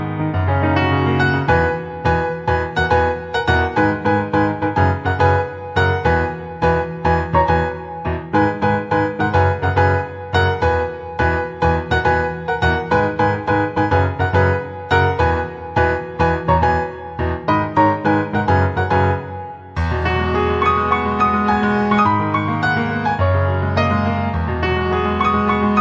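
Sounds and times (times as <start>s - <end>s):
piano: 0.0s - 25.7s.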